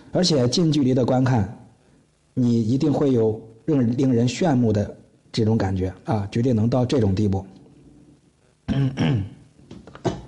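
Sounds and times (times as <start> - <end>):
speech: 0.1 - 1.6, 2.4 - 7.6, 8.7 - 9.4
throat clearing: 8.7 - 9.4.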